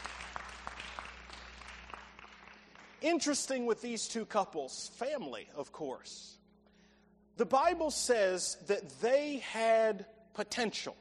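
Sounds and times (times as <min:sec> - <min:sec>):
audience applause welcoming someone to a stage: 0:00.0 - 0:03.0
speech: 0:03.0 - 0:06.4, 0:07.4 - 0:10.9.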